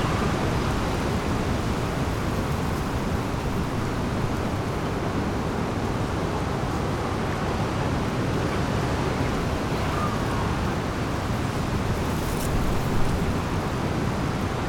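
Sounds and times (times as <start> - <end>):
water rushing at the Rahe lock: 0.0 - 14.6.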